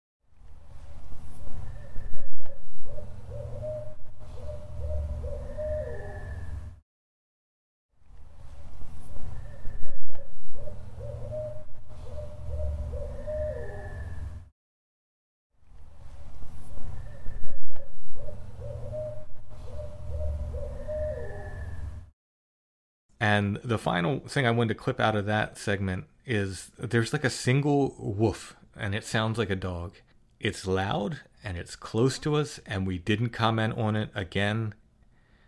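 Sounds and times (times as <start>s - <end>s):
owl hooting: 1.6s - 6.8s, 9.2s - 14.4s, 16.8s - 22.0s
speech: 23.2s - 34.8s.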